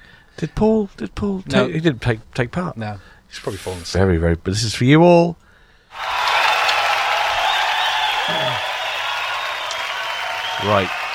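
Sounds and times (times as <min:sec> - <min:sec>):
speech: 0:00.4 - 0:06.1, 0:10.6 - 0:11.1
big audience applause: 0:05.9 - 0:11.1.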